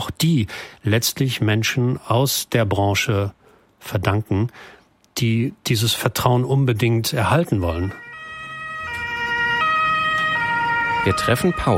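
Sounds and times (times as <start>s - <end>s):
speech: 0.1s - 8.0s, 11.0s - 11.7s
faint vehicle noise: 7.1s - 11.7s
ambulance siren: 7.6s - 11.7s.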